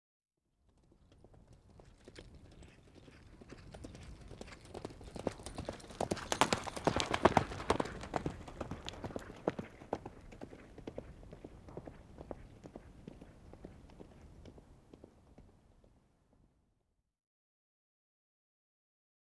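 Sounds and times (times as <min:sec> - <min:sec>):
horse cantering, hoofbeats on dirt: 0:00.7 - 0:16.0.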